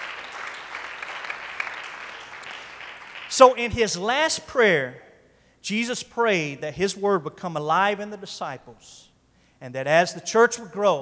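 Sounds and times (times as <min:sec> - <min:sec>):
audience clapping hands: 0:00.0 - 0:03.8
speech: 0:03.3 - 0:10.9.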